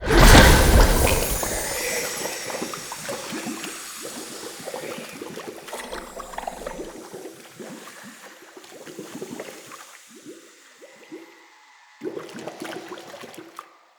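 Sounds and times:
magic spell sound effect: 0:00.0 - 0:06.8.

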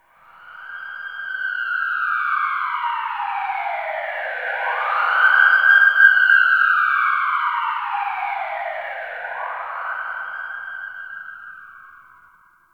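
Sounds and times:
distant siren in a tunnel: 0:00.1 - 0:12.6.

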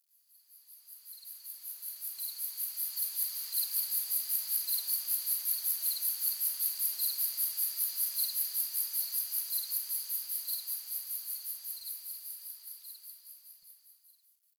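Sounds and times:
tree crickets: 0:00.1 - 0:14.4.

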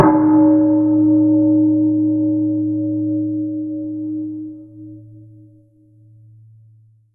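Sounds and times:
bell: 0:00.0 - 0:05.4.

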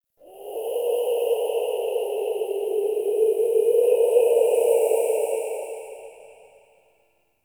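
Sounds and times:
howling exterior wind: 0:00.2 - 0:06.6.

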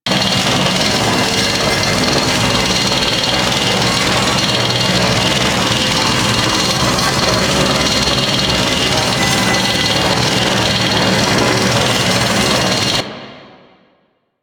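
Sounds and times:
reactor wheel loop: 0:00.0 - 0:13.1.

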